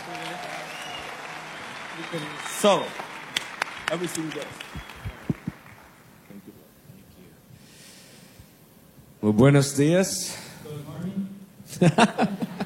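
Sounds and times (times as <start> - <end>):
audience applause: 0.0 - 6.4
speech: 2.0 - 3.1, 3.9 - 4.9, 9.3 - 10.4, 11.8 - 12.4
laughter: 11.7 - 12.6.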